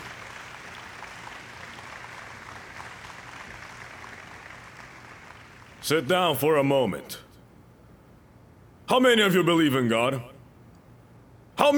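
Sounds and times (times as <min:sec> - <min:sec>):
crowd clapping: 0:00.0 - 0:05.8
speech: 0:05.9 - 0:07.2, 0:08.9 - 0:10.3, 0:11.6 - 0:11.7.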